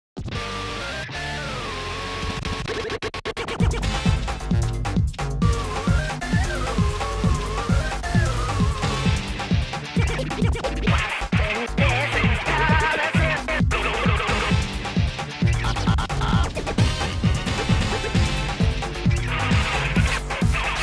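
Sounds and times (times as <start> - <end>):
trailer music: 0.2 - 20.8.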